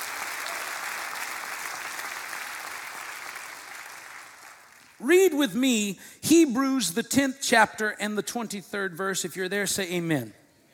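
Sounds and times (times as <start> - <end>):
audience hand clapping in praise: 0.0 - 5.0
speech: 5.0 - 10.4.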